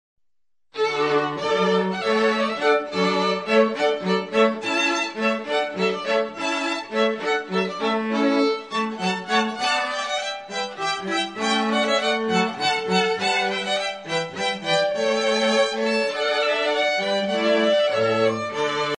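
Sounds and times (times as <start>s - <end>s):
string quartet playing hornpipe: 0.8s - 18.9s.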